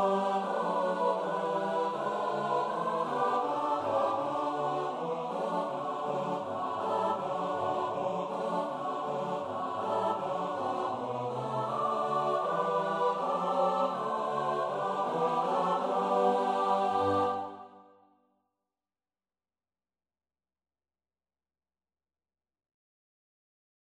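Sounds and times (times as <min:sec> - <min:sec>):
SATB choir setting: 0:00.0 - 0:17.9.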